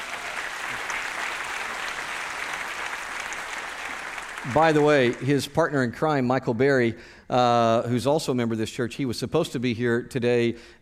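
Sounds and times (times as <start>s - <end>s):
church audience applause welcoming a guest speaker: 0.0s - 5.7s
speech: 4.4s - 10.8s.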